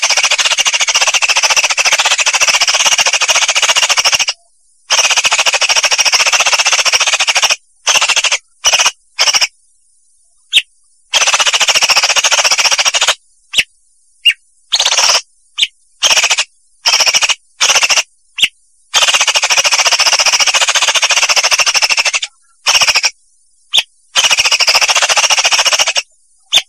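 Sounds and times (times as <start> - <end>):
Vietnam leafbird chattering song: 0.0 - 9.6, 10.2 - 26.6.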